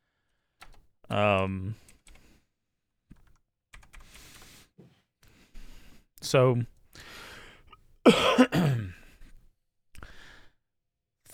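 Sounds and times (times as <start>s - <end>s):
computer keyboard typing: 0.6s - 0.8s, 1.8s - 2.3s, 3.1s - 4.6s
speech: 1.1s - 1.9s, 6.2s - 6.7s, 8.0s - 8.9s.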